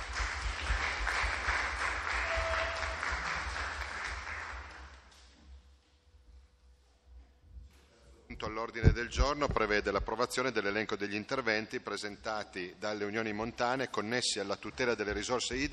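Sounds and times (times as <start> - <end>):
audience applause: 0.0 - 5.1
speech: 8.6 - 15.7.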